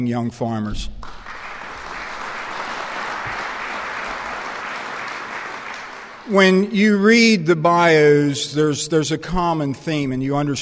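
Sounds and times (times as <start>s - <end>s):
speech: 0.0s - 1.2s, 6.3s - 10.5s
audience applause: 1.0s - 6.6s.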